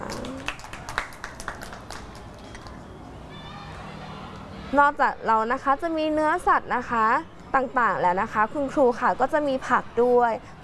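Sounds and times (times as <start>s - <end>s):
children clapping: 0.0s - 2.8s
speech: 4.7s - 10.6s.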